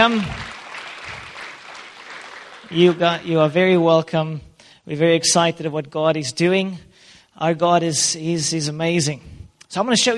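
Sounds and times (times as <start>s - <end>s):
speech: 0.0s - 0.5s, 2.7s - 10.1s
church congregation applause welcoming visiting students from Southernwood: 0.0s - 3.5s.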